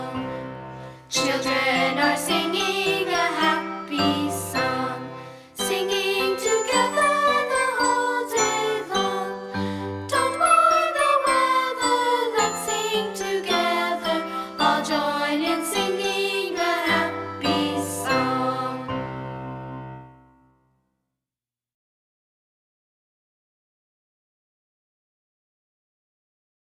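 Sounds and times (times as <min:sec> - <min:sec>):
happy song: 0:00.0 - 0:20.2.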